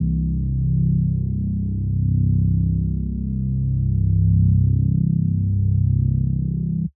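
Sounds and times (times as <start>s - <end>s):
bass: 0.0s - 6.9s.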